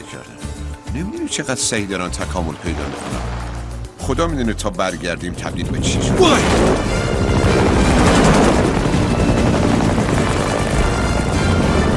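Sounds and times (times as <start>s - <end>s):
speech: 0.1s - 8.4s
helicopter flying overhead: 3.9s - 11.9s.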